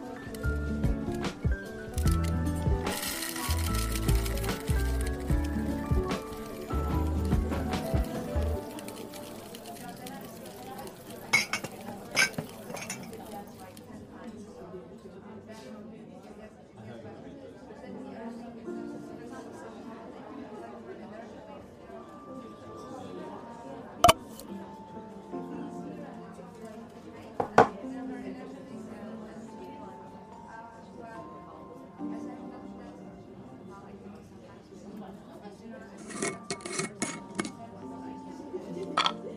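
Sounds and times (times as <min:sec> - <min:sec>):
murmur of overlapping voices in a coffee shop: 0:00.0 - 0:39.3
clinks of cups or dishes: 0:02.9 - 0:13.6, 0:24.0 - 0:24.5, 0:36.0 - 0:37.6, 0:38.8 - 0:39.2.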